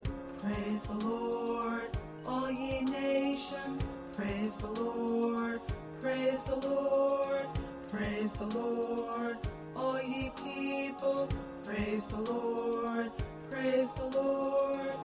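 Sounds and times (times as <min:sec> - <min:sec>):
tenor singing: 0:00.4 - 0:15.0.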